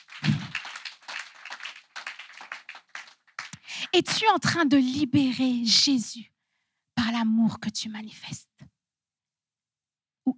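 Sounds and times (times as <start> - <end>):
church congregation clapping to acclaim the word of God: 0.0 - 4.0
speech: 3.9 - 6.3, 7.2 - 8.5.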